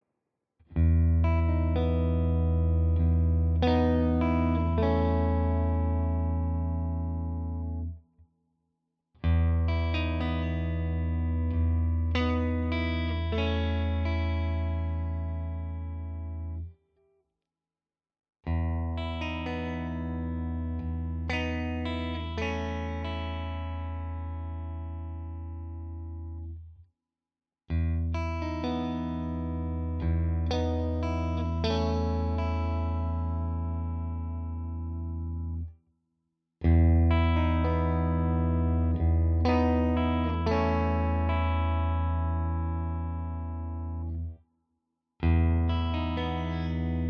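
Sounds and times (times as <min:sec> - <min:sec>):
Ibanez AZ guitar clean arpeggios in all positions: 0:00.7 - 0:08.0, 0:09.2 - 0:16.8, 0:18.5 - 0:26.6, 0:27.7 - 0:35.7, 0:36.6 - 0:44.4, 0:45.2 - 0:47.0.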